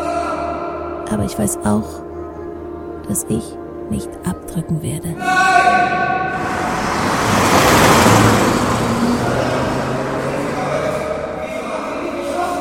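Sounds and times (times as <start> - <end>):
speech: 1.1 - 2.0, 3.1 - 6.6
car speeding past: 5.9 - 12.5.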